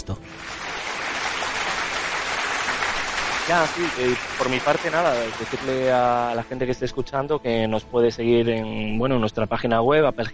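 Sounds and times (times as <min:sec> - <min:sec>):
crowd applause: 0:00.2 - 0:06.5
speech: 0:03.5 - 0:10.3.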